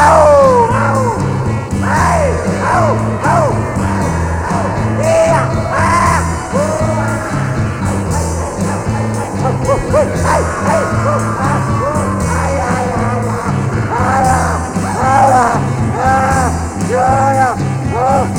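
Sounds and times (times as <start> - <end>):
dogs barking: 0.0 - 18.3
laughter: 0.0 - 18.3.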